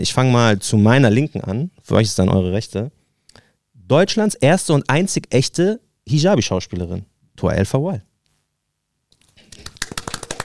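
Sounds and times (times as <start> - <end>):
speech: 0.0 - 3.0, 3.9 - 8.1
audience applause: 9.5 - 10.4.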